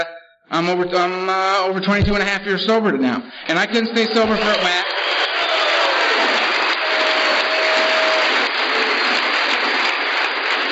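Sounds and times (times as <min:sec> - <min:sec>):
speech: 0:00.0 - 0:05.0
audience clapping: 0:03.5 - 0:10.7.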